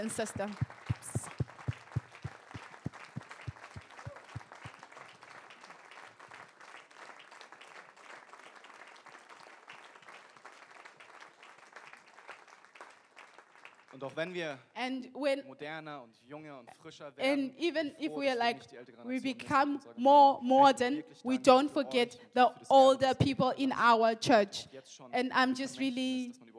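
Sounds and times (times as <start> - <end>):
speech: 0.0 - 1.0, 14.2 - 26.5
audience applause: 0.0 - 14.1.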